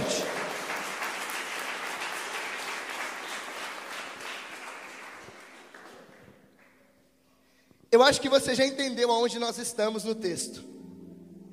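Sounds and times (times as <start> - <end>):
audience applause: 0.0 - 6.7
speech: 8.0 - 10.8.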